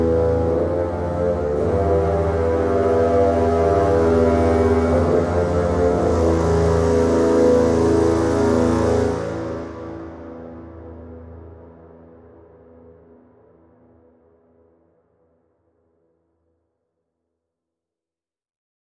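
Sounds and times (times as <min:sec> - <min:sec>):
orchestra: 0:00.0 - 0:12.0.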